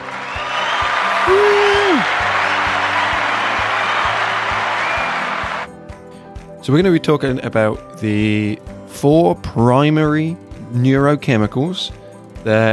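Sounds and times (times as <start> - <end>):
added crowd cheering effect: 0.0 - 5.7
speech: 6.7 - 12.7.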